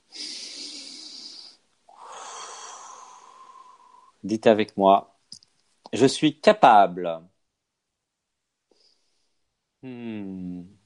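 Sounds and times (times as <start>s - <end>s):
deep breath: 0.1s - 4.2s
speech: 4.2s - 5.1s, 5.9s - 7.3s, 9.8s - 10.7s.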